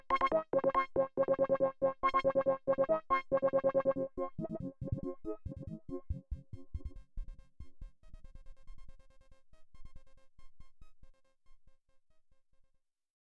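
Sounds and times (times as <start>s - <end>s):
Doepfer A-121 and A-138j modular synthesizer: 0.2s - 8.9s.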